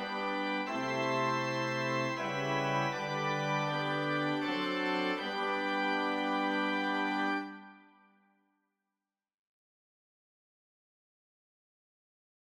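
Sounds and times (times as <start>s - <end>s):
andante voluntary for organ: 0.0s - 7.8s.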